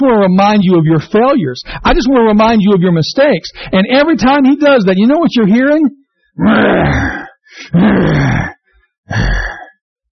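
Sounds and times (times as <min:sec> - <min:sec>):
speech: 0:00.0 - 0:08.5, 0:09.1 - 0:09.5
voice imitating a lion's growl: 0:06.4 - 0:09.8.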